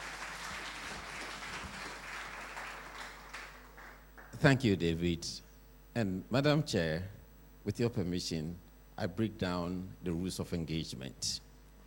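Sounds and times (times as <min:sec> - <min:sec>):
audience applause: 0:00.0 - 0:04.4
speech: 0:04.4 - 0:05.4, 0:06.0 - 0:11.4.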